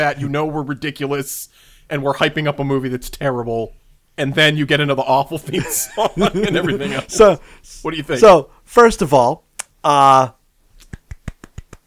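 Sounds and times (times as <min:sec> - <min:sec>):
speech: 0:00.0 - 0:10.4
laughter: 0:05.5 - 0:07.4
golf clap, quiet polite clapping: 0:10.8 - 0:11.8.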